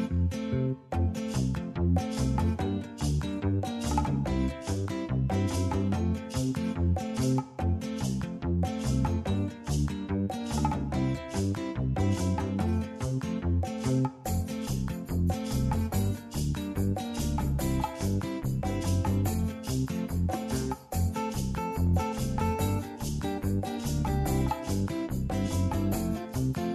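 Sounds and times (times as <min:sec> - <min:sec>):
background music: 0:00.1 - 0:26.7.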